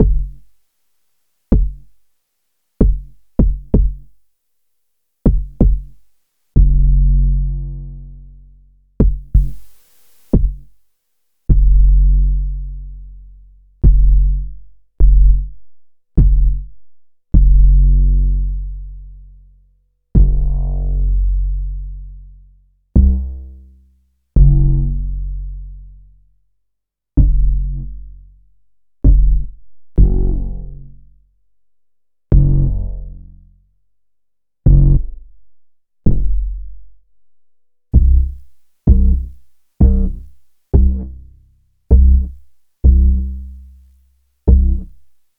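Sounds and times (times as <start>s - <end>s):
bass: 0.0s - 0.6s, 1.5s - 2.1s, 2.8s - 4.2s, 5.2s - 10.8s, 11.5s - 33.9s, 34.6s - 45.3s.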